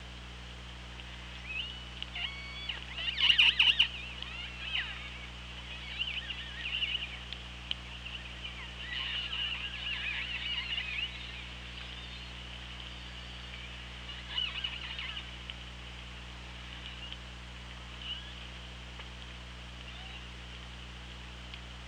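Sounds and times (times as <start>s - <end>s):
steady hydrophone hum and hiss: 0.0s - 21.8s
killer whale calls underwater: 1.4s - 15.4s.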